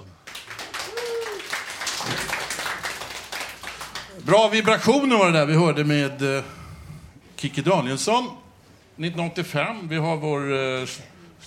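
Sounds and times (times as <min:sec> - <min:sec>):
applause: 0:00.0 - 0:04.8
person whooping: 0:00.7 - 0:01.6
speech: 0:04.2 - 0:06.6, 0:07.4 - 0:08.4, 0:09.0 - 0:11.4.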